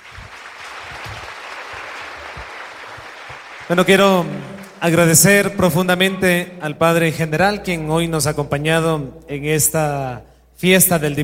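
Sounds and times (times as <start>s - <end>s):
audience applause: 0.0s - 5.0s
speech: 3.7s - 11.2s.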